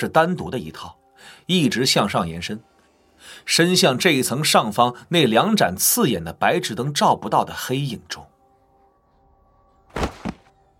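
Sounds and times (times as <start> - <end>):
speech: 0.0 - 8.3
heavy thuds of someone jumping down onto floor: 9.9 - 10.5.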